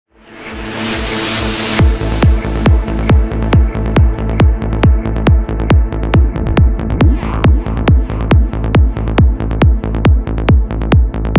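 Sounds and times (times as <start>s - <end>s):
kick drum: 1.7s - 11.3s.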